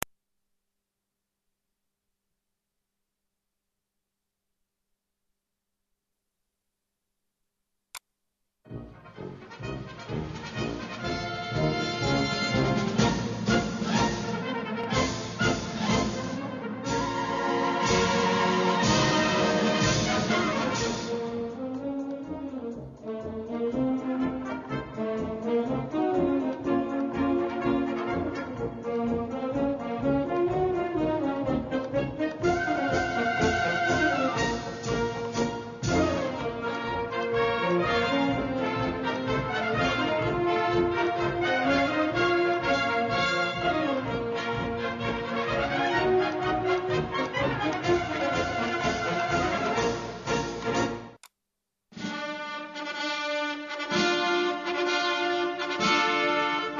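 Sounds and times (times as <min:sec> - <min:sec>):
Ukrainian military band playing: 0:08.7 - 0:51.2, 0:52.0 - 0:56.7.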